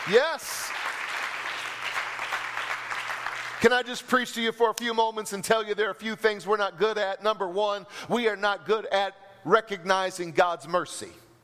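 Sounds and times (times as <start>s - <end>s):
congregation clapping hands during a church service: 0.0s - 5.0s
speech: 0.1s - 0.8s, 3.6s - 11.2s.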